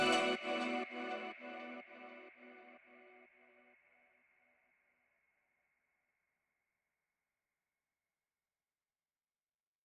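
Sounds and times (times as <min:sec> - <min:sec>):
instrumental music: 0:00.0 - 0:02.1.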